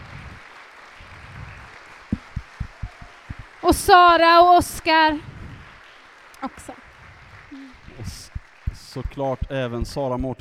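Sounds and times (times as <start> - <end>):
audience applause: 0.0 - 9.5
speech: 3.6 - 5.3, 9.0 - 10.3.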